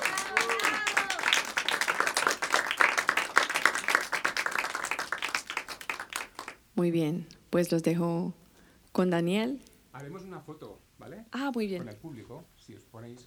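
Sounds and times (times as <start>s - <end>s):
audience applause after a concert: 0.0s - 6.6s
speech: 6.8s - 8.4s, 9.0s - 13.2s.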